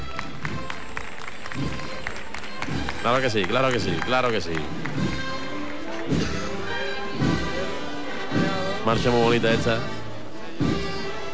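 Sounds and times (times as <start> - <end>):
crowd applause at an event with a march: 0.0 - 6.6
crowd noise: 0.0 - 11.3
speech: 3.0 - 5.2, 6.1 - 6.4, 8.9 - 10.0.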